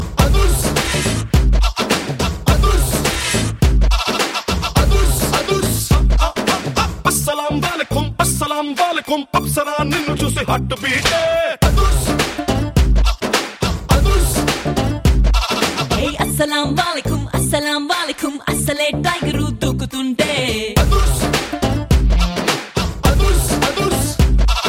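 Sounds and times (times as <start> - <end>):
main music: 0.0 - 24.6.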